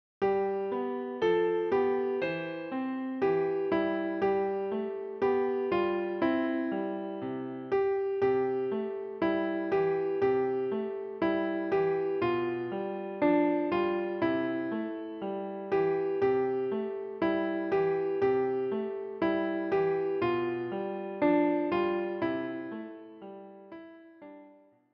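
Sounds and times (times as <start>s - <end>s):
piano: 0.2s - 24.9s.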